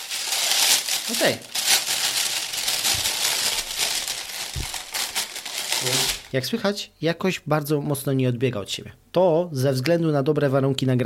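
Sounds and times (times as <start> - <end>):
rustling packaging: 0.0 - 6.4
speech: 1.1 - 1.5, 5.8 - 11.0.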